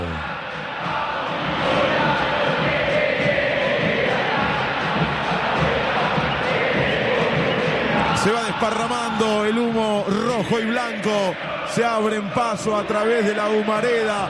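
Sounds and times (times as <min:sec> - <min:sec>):
football crowd roaring at the Monumental stadium, River vs Rosario Central: 0:00.0 - 0:14.2
speech: 0:10.4 - 0:14.2.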